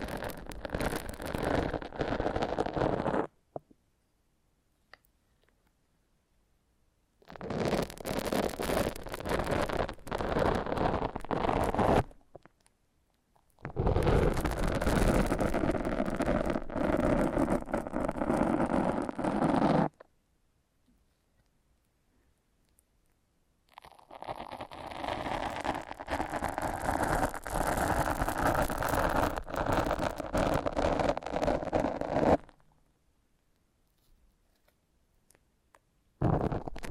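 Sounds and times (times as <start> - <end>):
foam being massaged: 0.0 - 3.3, 7.3 - 12.2, 13.6 - 20.0, 23.8 - 32.6, 36.2 - 36.9.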